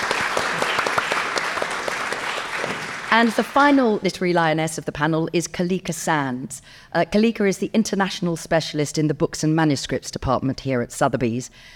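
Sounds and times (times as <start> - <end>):
audience applause: 0.0 - 4.0
speech: 3.1 - 11.7.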